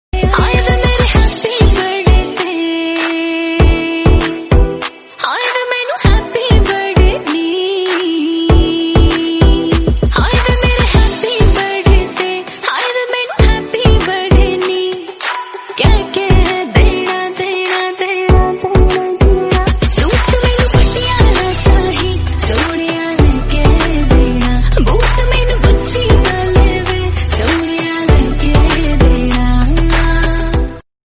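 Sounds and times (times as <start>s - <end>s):
birthday song in Hindi: 0.2s - 30.8s.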